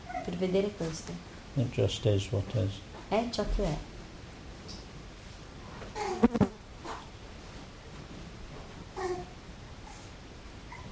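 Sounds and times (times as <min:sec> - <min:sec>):
speech: 0:00.4 - 0:03.9
baby babbling and cooing in a quiet meditation hall: 0:06.0 - 0:06.2, 0:09.0 - 0:09.3.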